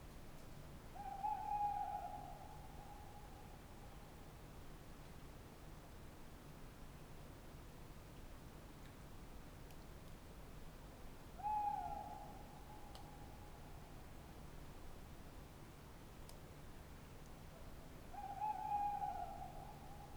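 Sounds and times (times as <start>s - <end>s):
tawny owl hooting by the Dordogne at night: 1.0s - 2.4s, 11.4s - 12.5s, 18.2s - 19.9s.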